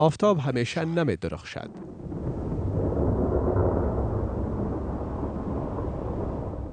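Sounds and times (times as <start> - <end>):
speech: 0.0 - 2.0
rolling thunder in a thunderstorm: 1.6 - 6.7.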